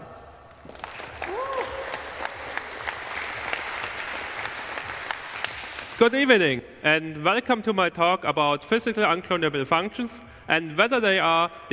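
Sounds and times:
audience clapping: 0:00.5 - 0:06.1
person whooping: 0:01.2 - 0:02.4
speech: 0:06.0 - 0:11.7.

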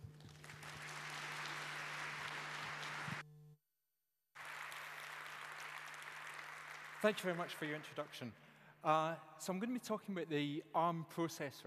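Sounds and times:
audience clapping at the 34C3 conference: 0:00.0 - 0:03.2, 0:04.4 - 0:08.4
speech: 0:07.0 - 0:11.6.

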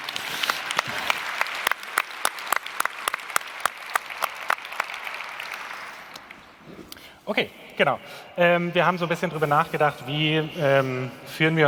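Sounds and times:
audience applause: 0:00.0 - 0:06.6
speech: 0:07.3 - 0:11.6.

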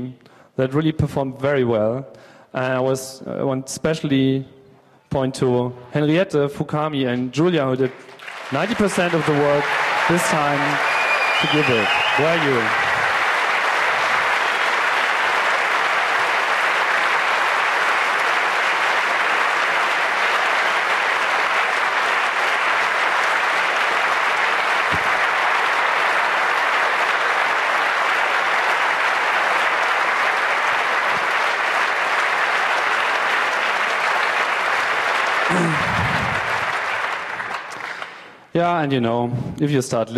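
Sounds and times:
speech: 0:00.0 - 0:12.9, 0:38.6 - 0:40.1
audience applause: 0:07.8 - 0:38.4.

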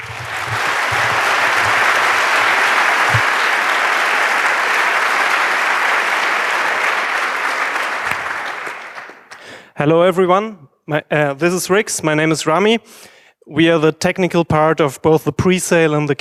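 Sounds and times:
audience applause: 0:00.0 - 0:09.6
speech: 0:09.8 - 0:16.2.

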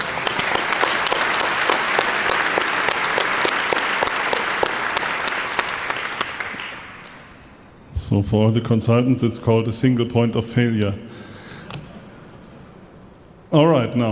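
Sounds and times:
tech conference crowd applause: 0:00.0 - 0:07.4
speech: 0:08.1 - 0:11.2, 0:13.5 - 0:14.1.

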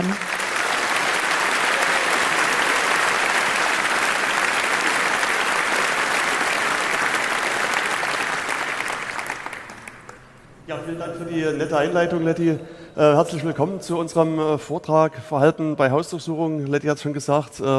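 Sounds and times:
audience applause: 0:00.0 - 0:10.4
speech: 0:10.9 - 0:17.7.

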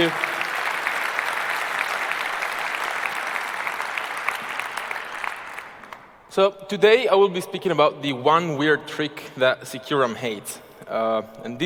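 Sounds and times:
speech: 0:00.0 - 0:00.2, 0:06.4 - 0:11.6
audience applause: 0:00.0 - 0:06.2.

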